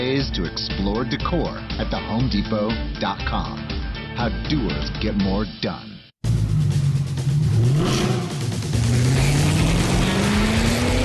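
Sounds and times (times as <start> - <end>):
speech: 0.2 - 5.9
sports car engine revving: 6.3 - 11.0.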